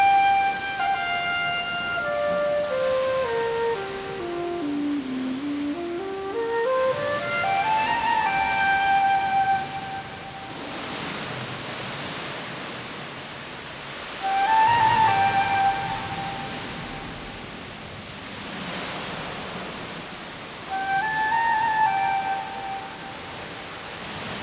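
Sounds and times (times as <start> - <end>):
flute playing in a cave: 0.0 - 11.3, 13.9 - 17.6, 20.5 - 24.4.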